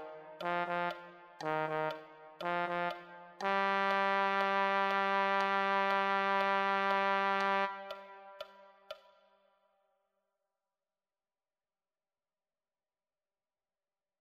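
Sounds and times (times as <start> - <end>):
trombone: 0.0 - 8.0.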